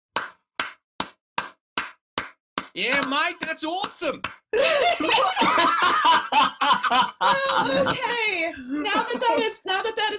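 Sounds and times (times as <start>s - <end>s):
single hand clap: 0.1s - 4.4s
speech: 2.8s - 10.1s
laughter: 4.6s - 9.6s.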